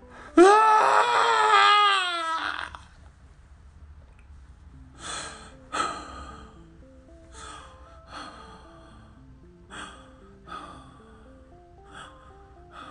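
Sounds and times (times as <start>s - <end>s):
angry scream muffled into a shoulder: 0.4s - 2.8s
ragged breaths and soft sobbing gasps: 4.9s - 12.9s.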